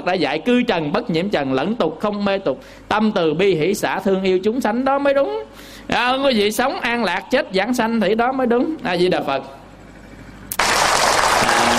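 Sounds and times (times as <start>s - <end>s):
speech: 0.0s - 9.6s
applause from Buddhist followers at the close of an evening dharma talk: 10.5s - 11.7s.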